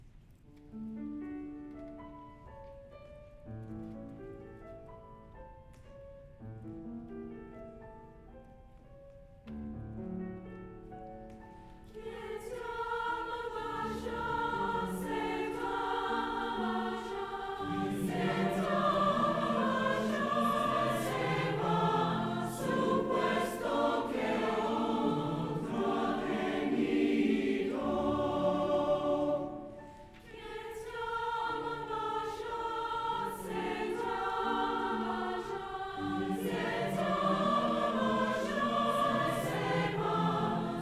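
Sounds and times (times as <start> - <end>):
university choir singing a tonada: 11.5 - 40.8.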